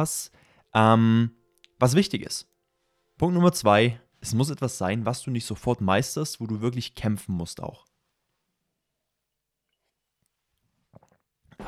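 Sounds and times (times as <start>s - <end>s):
speech: 0.0s - 2.5s, 3.2s - 7.9s
person taking a short sip of coffee: 10.8s - 11.6s.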